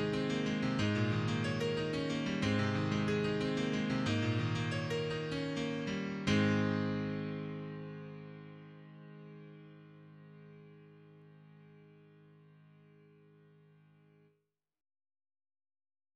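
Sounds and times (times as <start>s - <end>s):
piano improvisation: 0.0s - 11.6s.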